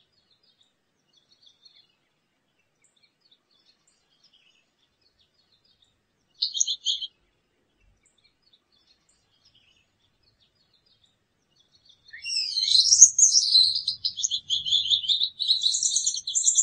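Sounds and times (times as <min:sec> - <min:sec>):
Gouldian finch: 0:06.4 - 0:07.1, 0:12.1 - 0:16.6.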